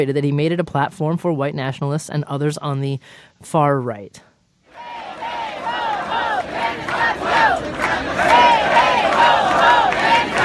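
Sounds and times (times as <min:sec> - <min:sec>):
speech: 0:00.0 - 0:04.3
protesters against President-elect Trump chanting in unison: 0:04.7 - 0:10.4.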